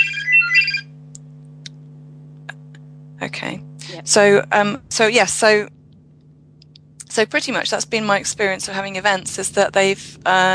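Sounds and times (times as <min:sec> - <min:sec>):
mobile phone ringtone: 0:00.0 - 0:00.9
faint steady hum: 0:00.0 - 0:10.5
speech: 0:03.3 - 0:05.8, 0:07.2 - 0:10.5.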